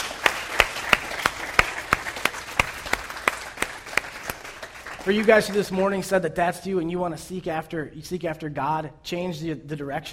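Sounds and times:
audience applause: 0.0s - 5.8s
speech: 5.0s - 10.1s.

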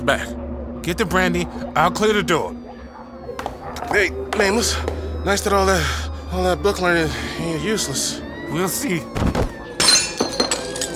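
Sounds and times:
speech: 0.0s - 2.6s, 3.3s - 9.5s
glass bottle smashing: 9.8s - 10.9s
glass shards tinkling: 9.8s - 10.9s.

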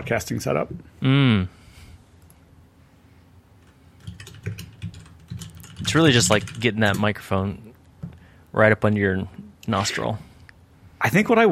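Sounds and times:
speech: 0.0s - 1.6s, 5.9s - 7.7s, 8.5s - 10.3s, 11.0s - 11.4s
typing a note on a computer keyboard: 4.0s - 7.1s.

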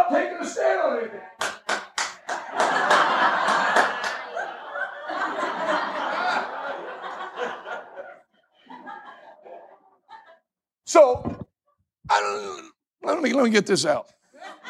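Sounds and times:
speech: 0.2s - 1.4s, 13.4s - 14.2s
audience clapping: 1.4s - 4.5s
laughter: 2.2s - 10.5s, 14.3s - 14.6s.

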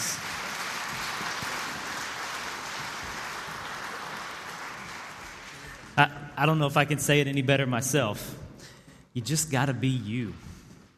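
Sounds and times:
crowd applause: 0.0s - 6.0s
speech: 6.0s - 8.4s, 9.2s - 10.5s.

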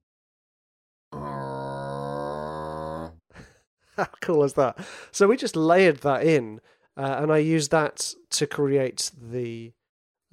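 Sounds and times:
low guttural growl made by a human voice: 1.1s - 3.2s
speech: 4.0s - 10.3s.

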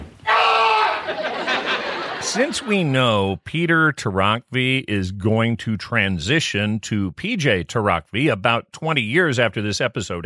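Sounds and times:
man screaming: 0.2s - 1.2s
laughter: 0.6s - 3.3s
speech: 2.3s - 10.2s.

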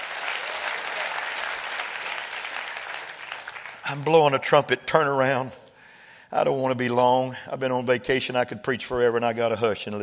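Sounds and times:
audience clapping hands in sustained applause: 0.0s - 4.4s
speech: 3.9s - 5.6s, 6.3s - 10.0s.

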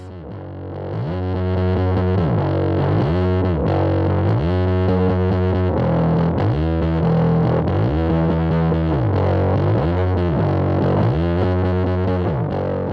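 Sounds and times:
heavily distorted bass sliding through Big Muff distortion: 0.0s - 12.9s.

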